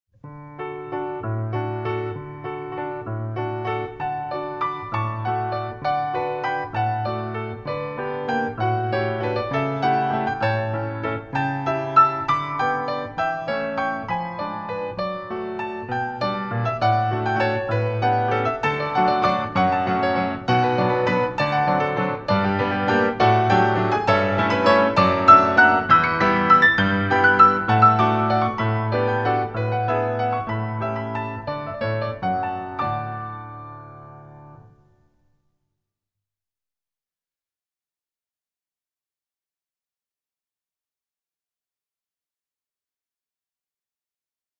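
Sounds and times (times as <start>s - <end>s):
waltz music: 0.7s - 34.7s.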